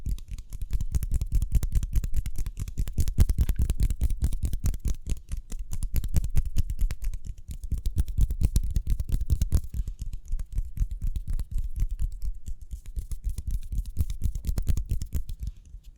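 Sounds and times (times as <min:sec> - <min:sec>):
fast hand rubbing and tapping: 0:00.0 - 0:15.9.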